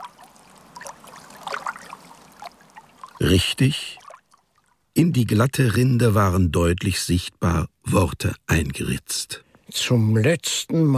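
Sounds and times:
river water trickling with small splashes and gurgles: 0.0 - 5.0
speech: 3.3 - 4.0, 5.0 - 10.9.

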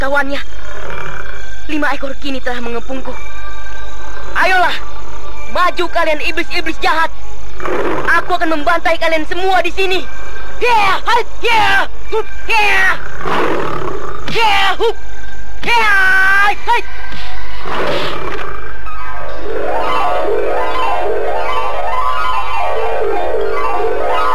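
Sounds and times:
speech: 0.0 - 0.9, 1.7 - 3.3, 4.4 - 17.0, 17.6 - 18.3
tiger shrieking roars with high wavering cries: 7.6 - 8.2, 13.0 - 14.3, 17.6 - 21.9
rising and falling warbling tone: 17.5 - 24.3.

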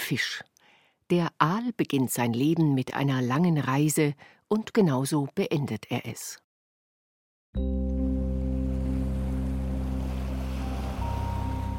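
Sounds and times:
speech: 0.1 - 0.5, 1.1 - 6.4, 7.6 - 8.0
deep rushing of sea water: 8.0 - 11.7.

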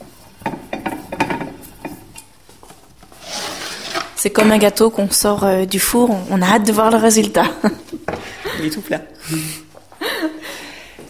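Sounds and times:
bound book taken out of a bookbinding press: 0.4 - 2.2, 3.0 - 4.7
speech: 4.2 - 7.9, 8.6 - 9.6.

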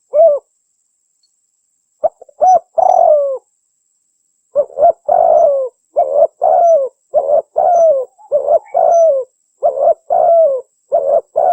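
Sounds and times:
spotted dove cooing: 0.0 - 0.5, 2.0 - 3.4, 4.6 - 11.5.

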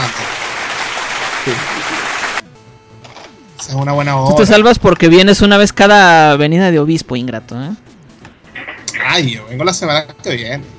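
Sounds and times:
applause congratulating someone: 0.0 - 2.4
speech: 1.5 - 1.7, 3.7 - 7.9, 9.1 - 10.7.

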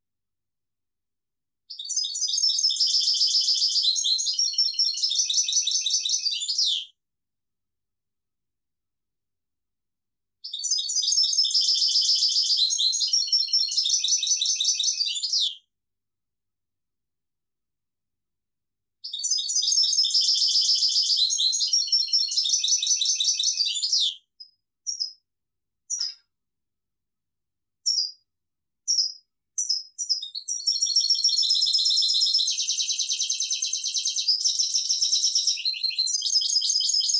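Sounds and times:
European goldfinch singing: 1.7 - 6.8, 10.5 - 15.5, 19.1 - 25.2, 28.9 - 37.1.

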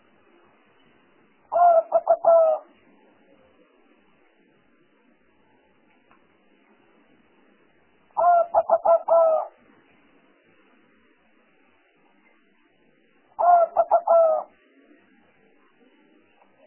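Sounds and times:
spotted dove cooing: 1.5 - 2.7, 8.2 - 9.5, 13.4 - 14.6.

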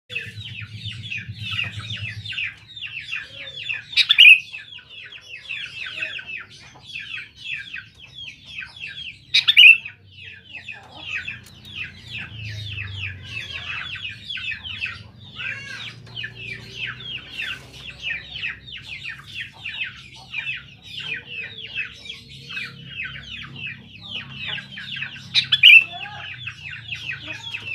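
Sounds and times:
sooty-headed bulbul song: 0.1 - 27.7.

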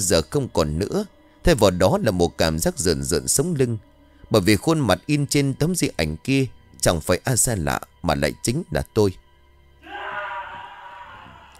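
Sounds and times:
speech: 0.0 - 9.2
man screaming loudly in terror: 9.8 - 11.5.

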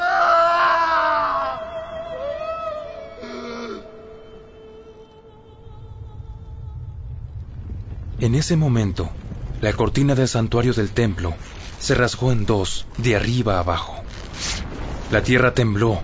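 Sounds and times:
person screaming: 0.0 - 4.0
speech: 8.2 - 16.0.

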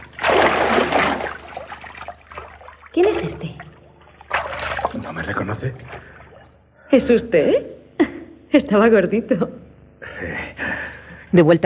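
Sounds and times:
bathwater sloshing over the rim of a bathtub as a man drops backward into it: 0.0 - 5.2
speech: 3.0 - 3.7, 5.2 - 6.1, 6.9 - 7.8, 8.5 - 10.6, 11.3 - 11.6.

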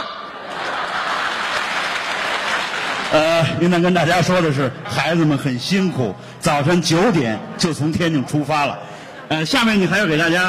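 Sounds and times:
laughter: 0.0 - 2.3, 6.8 - 10.4
warm audience applause: 0.5 - 3.3
speech: 3.1 - 10.4.

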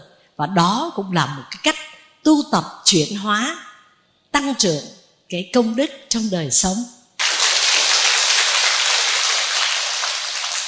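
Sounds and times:
speech: 0.4 - 3.7, 4.3 - 7.0
crowd applauding: 7.2 - 10.6.

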